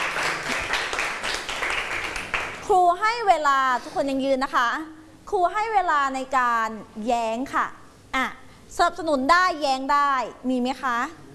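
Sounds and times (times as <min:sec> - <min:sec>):
students in a classroom clapping for a classmate: 0:00.0 - 0:02.7
speech: 0:02.7 - 0:11.2.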